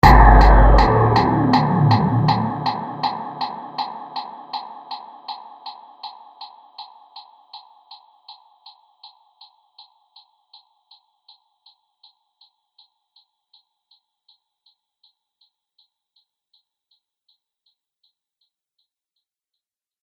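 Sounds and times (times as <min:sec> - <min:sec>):
futuristic destruction impact: 0:00.0 - 0:04.8.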